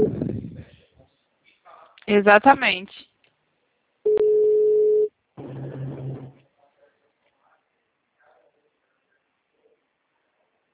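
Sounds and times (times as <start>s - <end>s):
low telephone line noise: 0.0s - 0.7s
speech: 2.1s - 3.1s
telephone ringback tone: 4.1s - 5.1s.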